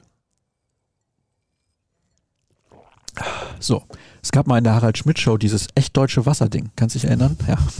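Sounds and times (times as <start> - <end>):
person sipping a drink: 0.0 - 4.2
speech: 3.6 - 7.7.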